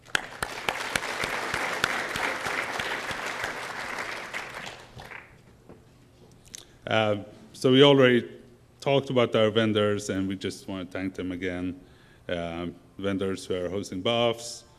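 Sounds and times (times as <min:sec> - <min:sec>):
conference audience applause: 0:00.0 - 0:05.4
speech: 0:06.9 - 0:14.7.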